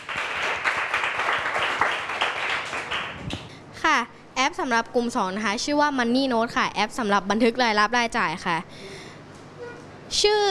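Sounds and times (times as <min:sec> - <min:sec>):
audience applause: 0:00.0 - 0:03.5
speech: 0:04.0 - 0:08.9, 0:10.1 - 0:10.4.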